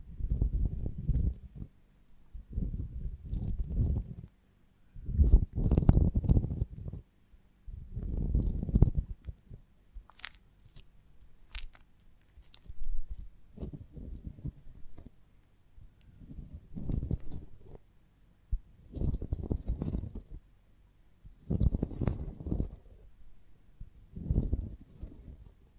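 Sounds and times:
honeycomb on branch being chewed: 0:00.2 - 0:01.7, 0:02.6 - 0:04.3, 0:05.1 - 0:07.0, 0:07.9 - 0:15.2, 0:15.8 - 0:17.8, 0:18.9 - 0:20.4, 0:21.3 - 0:23.0, 0:24.1 - 0:25.5.

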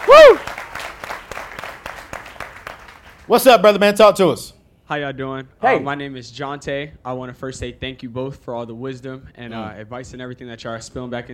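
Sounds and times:
audience applauding: 0:00.0 - 0:03.4
speech: 0:03.3 - 0:11.3.

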